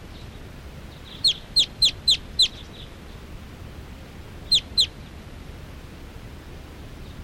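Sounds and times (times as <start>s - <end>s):
wild birds calling: 0.9s - 3.2s, 4.4s - 5.1s.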